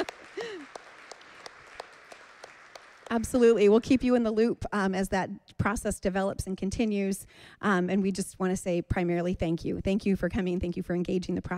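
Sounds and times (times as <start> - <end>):
scattered audience hand claps: 0.0 - 3.4
speech: 3.1 - 11.5.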